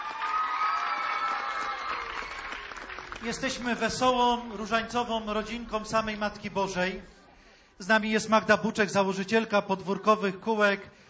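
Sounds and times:
applause and cheering for children: 0:00.0 - 0:04.1
speech: 0:03.2 - 0:07.2, 0:07.8 - 0:11.0.

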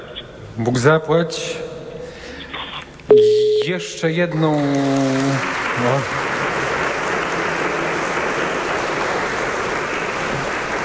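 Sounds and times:
speech: 0:00.6 - 0:01.7, 0:03.1 - 0:06.3
audience applause: 0:04.6 - 0:10.8.

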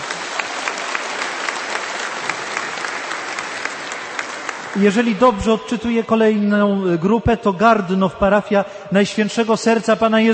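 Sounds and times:
audience applause: 0:00.0 - 0:05.1
speech: 0:04.8 - 0:10.3.

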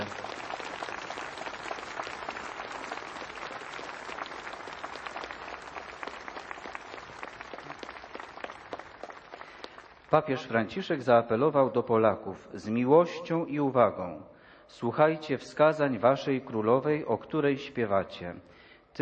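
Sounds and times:
crowd applause: 0:00.0 - 0:10.2
speech: 0:10.1 - 0:19.0.

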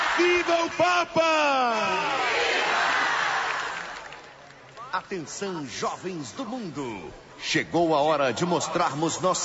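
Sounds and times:
speech: 0:00.2 - 0:02.4, 0:04.9 - 0:09.4
crowd applauding: 0:02.0 - 0:04.9.

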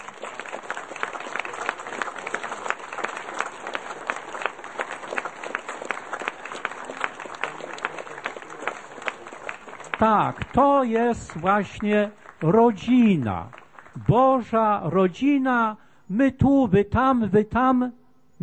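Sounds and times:
audience applause: 0:00.0 - 0:14.5
speech: 0:10.0 - 0:18.4.

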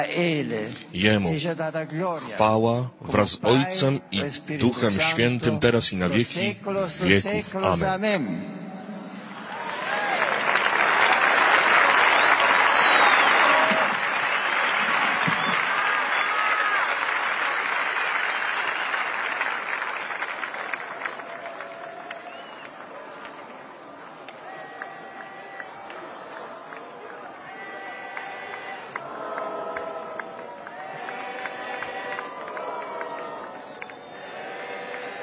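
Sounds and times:
speech: 0:00.0 - 0:08.6
audience applause after a homily: 0:09.1 - 0:35.2.

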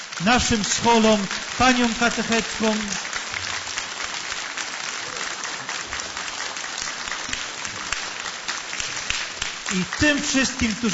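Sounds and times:
audience applause: 0:00.0 - 0:10.9
speech: 0:00.2 - 0:03.1, 0:09.7 - 0:10.9.

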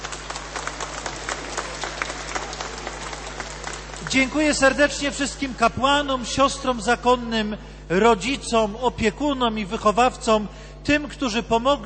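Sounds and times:
crowd applause: 0:00.0 - 0:04.8
speech: 0:04.1 - 0:11.8.

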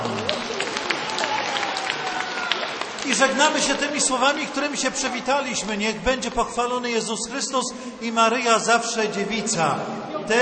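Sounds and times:
audience applause: 0:00.0 - 0:05.2
speech: 0:03.1 - 0:10.4.

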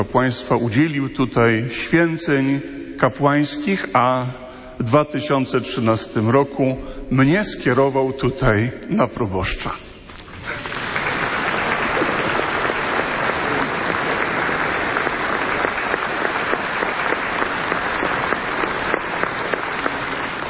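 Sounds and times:
speech: 0:00.0 - 0:10.6
applause: 0:10.3 - 0:20.4.

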